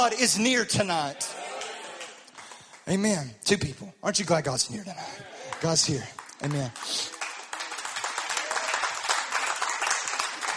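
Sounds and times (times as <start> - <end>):
speech: 0.0 - 1.4, 2.9 - 7.2
golf clap, quiet polite clapping: 5.5 - 10.5.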